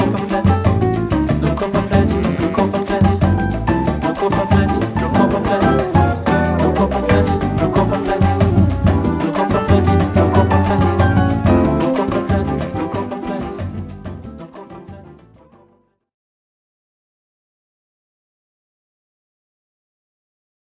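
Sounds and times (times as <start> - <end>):
batucada samba percussion with jazz: 0.0 - 15.6.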